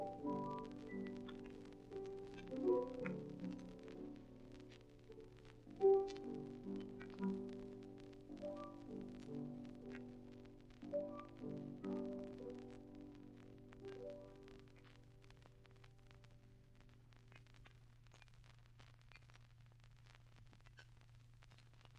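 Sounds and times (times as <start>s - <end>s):
piano: 0.0s - 17.5s.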